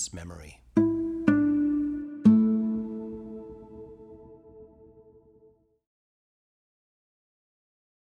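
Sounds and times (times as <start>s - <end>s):
harp: 0.8s - 5.0s.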